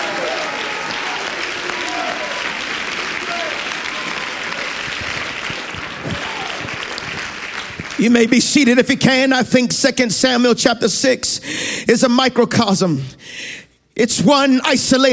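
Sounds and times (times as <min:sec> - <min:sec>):
crowd shouting praise: 0:00.0 - 0:08.0
audience clapping: 0:00.0 - 0:09.1
speech: 0:08.0 - 0:15.1.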